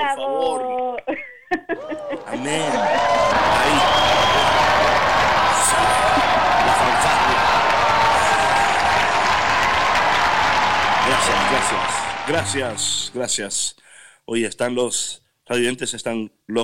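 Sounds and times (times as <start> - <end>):
speech: 0.0 - 3.0, 12.3 - 16.6
laughter: 0.3 - 10.0, 10.7 - 13.2
applause: 1.8 - 13.2
crowd cheering and whooping: 1.8 - 13.4.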